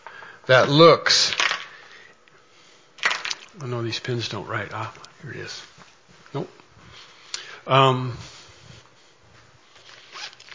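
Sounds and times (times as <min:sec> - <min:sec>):
speech: 0:00.5 - 0:01.4, 0:03.6 - 0:06.6, 0:07.7 - 0:08.3
zipper being zipped up: 0:10.1 - 0:10.5.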